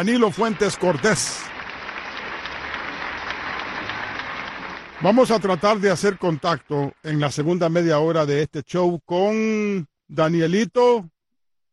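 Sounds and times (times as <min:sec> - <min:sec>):
speech: 0:00.0 - 0:01.5, 0:05.0 - 0:11.2
applause: 0:00.0 - 0:08.1.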